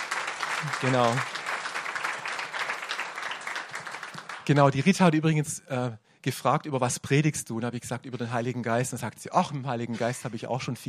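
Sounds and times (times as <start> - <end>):
audience applause: 0.0 - 4.9
speech: 0.6 - 1.4, 4.5 - 10.8.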